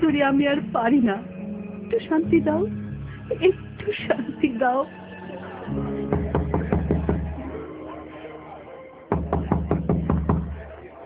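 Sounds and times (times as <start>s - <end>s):
speech: 0.1s - 1.3s, 1.9s - 6.1s
knocking on a door: 6.1s - 7.4s, 9.1s - 10.6s.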